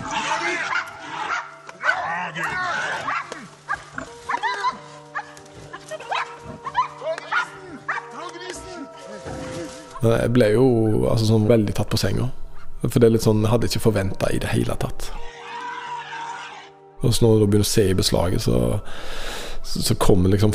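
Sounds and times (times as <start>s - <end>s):
wild boar squealing shrilly: 0.0s - 8.1s, 15.3s - 16.8s
large dogs barking, yelping and snarling attacking a wild boar: 0.0s - 8.2s
speech: 10.0s - 15.2s, 17.0s - 20.5s.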